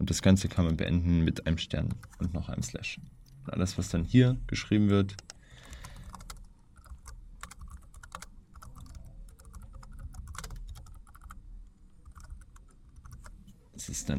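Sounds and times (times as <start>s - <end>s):
speech: 0.0s - 5.3s
typing on a computer keyboard entering a code comment: 5.2s - 11.4s, 12.0s - 13.4s.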